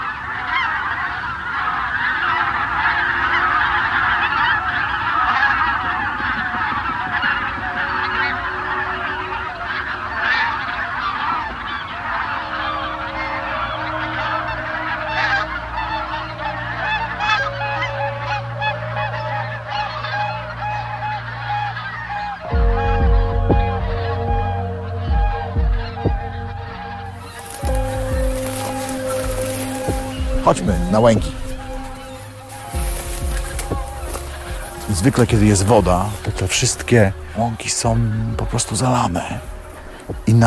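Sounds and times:
large flock of geese honking: 0:00.0 - 0:40.4
speech: 0:30.5 - 0:31.4, 0:35.0 - 0:39.5.

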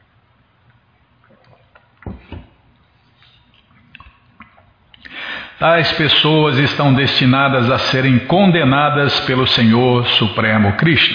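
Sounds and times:
speaker drinking water: 0:00.7 - 0:05.4
speech: 0:05.6 - 0:11.1.

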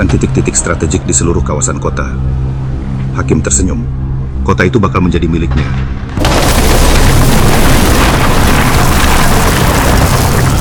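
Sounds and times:
speech: 0:00.0 - 0:02.5, 0:03.2 - 0:06.8
large explosion: 0:06.2 - 0:10.6.

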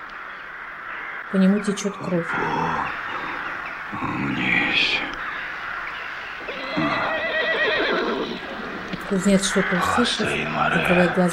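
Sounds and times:
speech: 0:01.3 - 0:03.1, 0:03.9 - 0:05.2, 0:09.1 - 0:11.3
horse neighing: 0:06.4 - 0:11.3.

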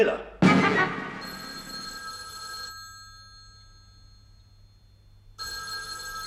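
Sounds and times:
telephone ringing: 0:01.2 - 0:06.2.

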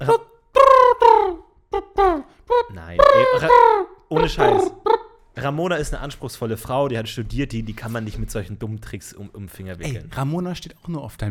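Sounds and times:
voice imitating pigeon call ending on a high tone: 0:00.0 - 0:05.2
speech: 0:04.2 - 0:04.8, 0:05.5 - 0:11.2.

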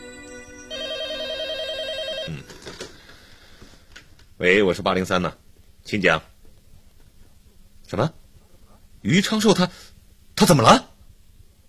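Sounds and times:
telephone ringing with electronic trill: 0:00.0 - 0:03.2
speech: 0:04.4 - 0:06.3, 0:07.9 - 0:08.2, 0:09.0 - 0:10.9.

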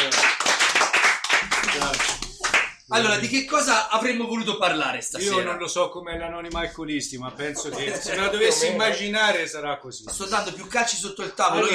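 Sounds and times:
group of people clapping: 0:00.0 - 0:03.3
speech: 0:02.9 - 0:11.7
people laughing: 0:07.4 - 0:09.1.

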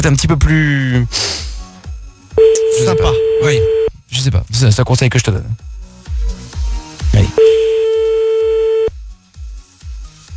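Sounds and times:
speech: 0:00.0 - 0:01.4, 0:02.4 - 0:05.7
telephone ringing tone of an outgoing call: 0:02.4 - 0:03.9, 0:07.4 - 0:08.9.

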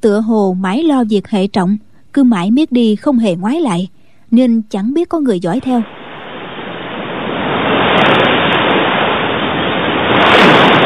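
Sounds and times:
speech: 0:00.0 - 0:06.0
waves crashing against rocky shore: 0:05.7 - 0:10.8.

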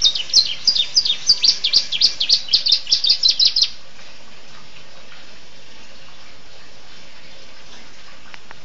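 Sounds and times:
Oriental magpie-robin song of rapid high chirps and sharp notes: 0:00.0 - 0:03.8.

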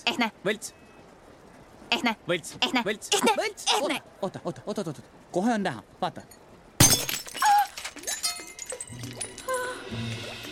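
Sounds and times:
speech: 0:00.0 - 0:00.8, 0:01.9 - 0:07.0
fake glass ruby being smashed: 0:06.8 - 0:09.5
glass fragments tinkling: 0:06.8 - 0:09.6.

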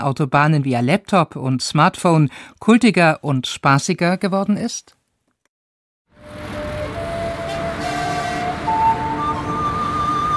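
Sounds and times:
speech: 0:00.0 - 0:05.0
car engine starting and revving: 0:06.2 - 0:10.0.

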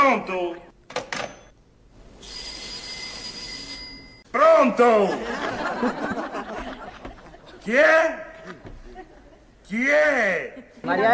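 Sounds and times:
speech: 0:00.2 - 0:00.7, 0:04.6 - 0:06.3, 0:07.7 - 0:08.6, 0:09.7 - 0:11.1
telephone ringing with high electronic tone: 0:02.2 - 0:04.3
laughter: 0:04.8 - 0:11.1.

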